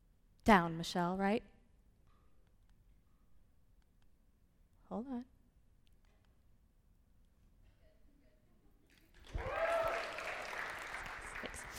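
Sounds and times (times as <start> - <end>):
speech: 0.5 - 1.5, 4.9 - 5.4
audience applause: 9.2 - 11.7.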